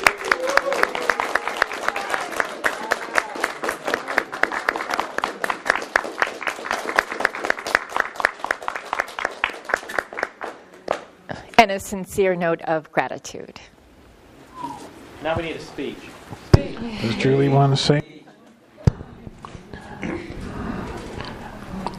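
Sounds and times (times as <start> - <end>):
audience applause: 0.0 - 11.1
speech: 11.6 - 13.8, 15.2 - 18.0.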